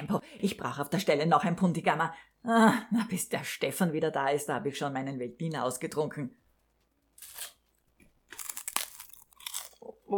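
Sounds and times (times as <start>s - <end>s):
speech: 0.1s - 6.4s
rice cakes bitten and chewed: 7.2s - 9.9s.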